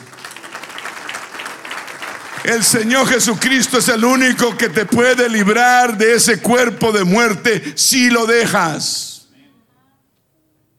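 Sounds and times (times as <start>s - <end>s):
audience applause: 0.0s - 7.3s
speech: 2.4s - 9.1s.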